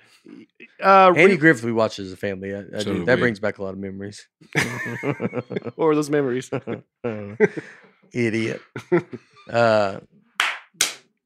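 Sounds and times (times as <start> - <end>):
speech: 0.8 - 10.2
laughter: 4.6 - 10.0
sharp hand claps: 10.4 - 11.0.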